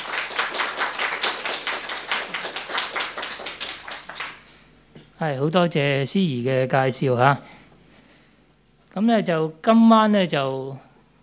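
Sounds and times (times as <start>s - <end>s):
audience clapping: 0.0s - 4.6s
speech: 5.2s - 7.5s, 9.0s - 10.9s.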